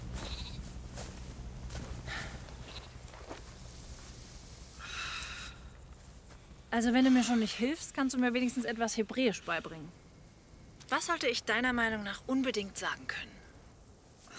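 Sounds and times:
sheep bleating: 0:00.1 - 0:00.7, 0:02.6 - 0:02.9
speech: 0:06.7 - 0:10.0, 0:11.0 - 0:13.3.

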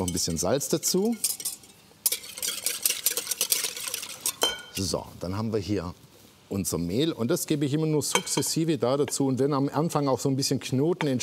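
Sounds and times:
speech: 0:00.1 - 0:01.5, 0:04.8 - 0:11.2
eggs and water whisked in a bowl: 0:01.0 - 0:04.5.

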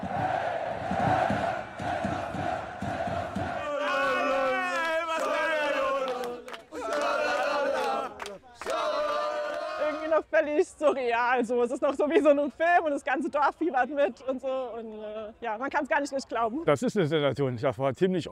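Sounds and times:
large stadium crowd chanting and cheering: 0:00.0 - 0:10.2
speech: 0:10.8 - 0:18.2.

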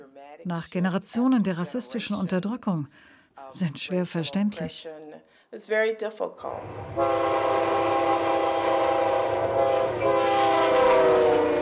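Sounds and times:
speech: 0:00.4 - 0:08.0
passenger train rumbling on rails: 0:06.5 - 0:11.6.

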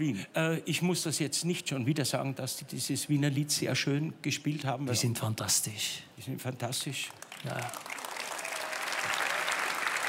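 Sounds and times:
speech: 0:00.0 - 0:08.0
audience applause for musicians: 0:07.2 - 0:10.0.

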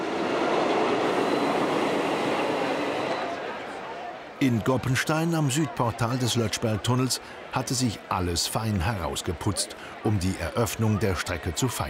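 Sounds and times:
steam train running on railway: 0:00.0 - 0:03.5
speech: 0:04.4 - 0:11.8.

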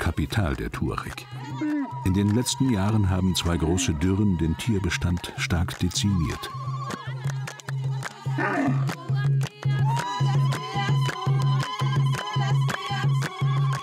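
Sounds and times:
rhythmic clapping: 0:00.0 - 0:13.8
speech: 0:00.1 - 0:06.7
tongue trilling: 0:03.5 - 0:04.2, 0:08.4 - 0:08.9.

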